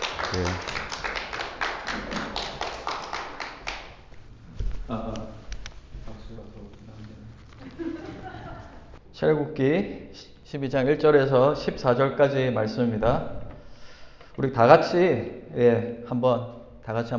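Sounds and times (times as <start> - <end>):
audience welcoming applause: 0.0 - 4.2
speech: 0.3 - 0.7, 9.2 - 13.4, 14.4 - 17.1
laughter: 7.6 - 9.0.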